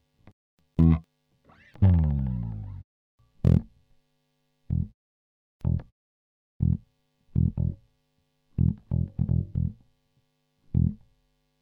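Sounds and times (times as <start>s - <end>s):
funky bass: 0.8s - 2.8s, 3.4s - 3.7s, 4.7s - 4.9s, 5.6s - 5.9s, 6.6s - 6.8s, 7.4s - 7.8s, 8.6s - 9.8s, 10.8s - 11.0s.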